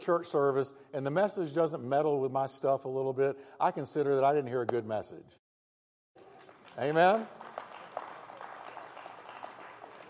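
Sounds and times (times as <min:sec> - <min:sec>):
speech: 0:00.0 - 0:05.4, 0:06.8 - 0:07.4
few people clapping: 0:06.2 - 0:10.0.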